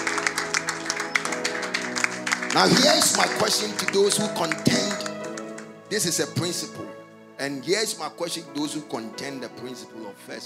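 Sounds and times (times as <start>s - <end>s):
audience clapping: 0.0s - 6.0s
speech: 2.6s - 5.0s, 5.9s - 10.4s.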